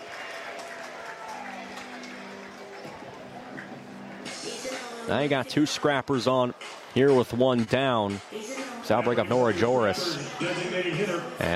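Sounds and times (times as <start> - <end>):
baseball crowd applause: 0.0 - 4.5
speech: 5.1 - 11.5.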